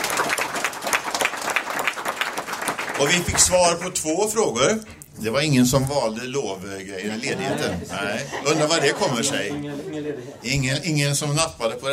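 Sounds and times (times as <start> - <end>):
audience applause at a meeting: 0.0 - 4.0
speech: 3.0 - 11.9
laughter: 7.0 - 10.9.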